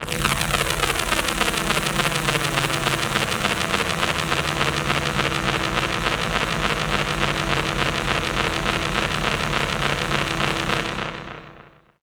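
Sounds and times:
mad radio twisted special effects: 0:00.0 - 0:11.6.

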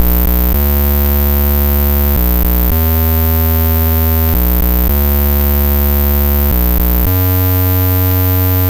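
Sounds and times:
Apple II chiptune bass: 0:00.0 - 0:08.6.

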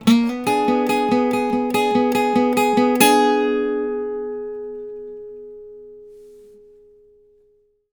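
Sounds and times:
blues guitar licks: 0:00.0 - 0:06.3.

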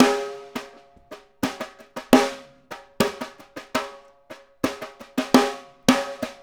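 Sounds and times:
snare drum pattern: 0:00.0 - 0:06.4.

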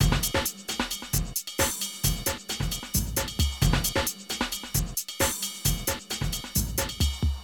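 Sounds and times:
rave and hardcore drum loops: 0:00.0 - 0:07.4.

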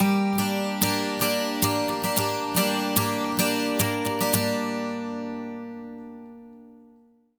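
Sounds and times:
12-string acoustic guitar loop at 110 BPM: 0:00.0 - 0:07.1.

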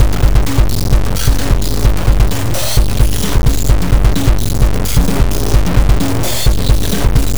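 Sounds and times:
eclectic electronica drum beat: 0:00.0 - 0:07.3.

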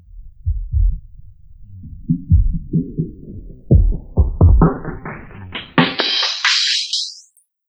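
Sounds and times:
filtered dark trip hop music: 0:00.0 - 0:07.3.

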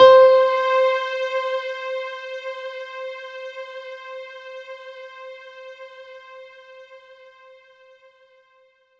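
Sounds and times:
synth note C5: 0:00.0 - 0:01.8.

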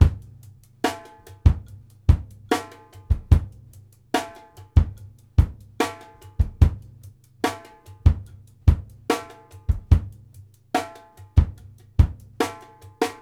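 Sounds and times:
funk kick drum: 0:00.0 - 0:00.5, 0:01.4 - 0:03.7, 0:04.8 - 0:07.0, 0:08.0 - 0:10.4, 0:11.4 - 0:13.2.

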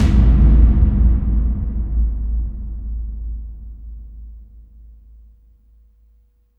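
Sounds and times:
cavernous tub ambient drums: 0:00.0 - 0:05.3.

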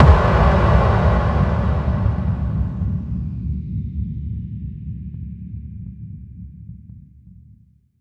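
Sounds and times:
effect kick drum hits: 0:00.0 - 0:02.9.

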